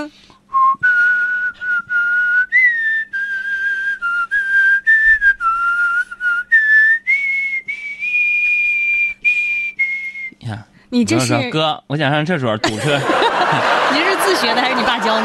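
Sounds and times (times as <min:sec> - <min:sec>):
speech: 0:00.0 - 0:00.3, 0:10.9 - 0:15.2
person whistling: 0:00.0 - 0:10.5
laughter: 0:11.1 - 0:11.5, 0:12.6 - 0:15.2.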